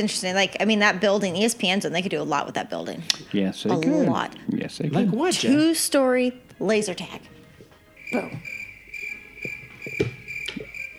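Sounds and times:
speech: 0:00.0 - 0:07.4, 0:08.1 - 0:08.6
crickets chirping sound effect: 0:07.9 - 0:10.9
low croaking pulses: 0:08.0 - 0:10.9.

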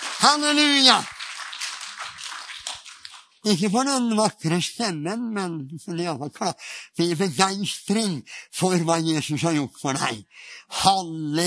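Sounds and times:
crowd clapping: 0:00.0 - 0:03.4
speech: 0:00.2 - 0:01.1, 0:03.4 - 0:11.4.

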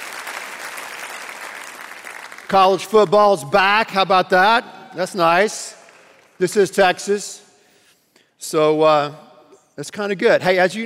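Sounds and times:
audience applause: 0:00.0 - 0:02.8
speech: 0:02.5 - 0:05.8, 0:06.4 - 0:07.4, 0:08.4 - 0:10.8.

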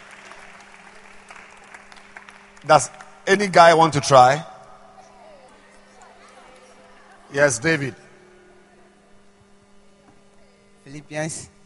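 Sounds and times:
audience clapping hands: 0:00.0 - 0:03.6
speech: 0:02.6 - 0:04.5, 0:07.3 - 0:08.0, 0:11.0 - 0:11.6.

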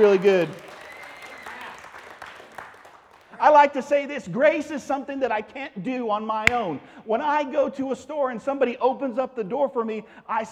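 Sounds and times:
speech: 0:00.0 - 0:00.6, 0:03.4 - 0:10.5
audience applause for worship team: 0:00.0 - 0:03.4.

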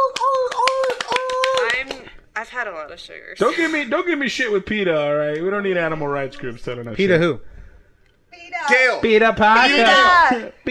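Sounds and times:
rapid seal-style hand claps: 0:00.0 - 0:02.1
speech: 0:02.4 - 0:07.5, 0:08.6 - 0:10.7.

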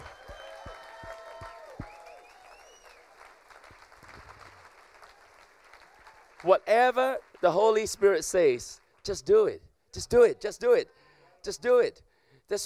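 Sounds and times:
cheers and whoops: 0:00.0 - 0:03.2, 0:05.0 - 0:06.4
audience clapping: 0:00.0 - 0:09.0
speech: 0:06.4 - 0:12.6.

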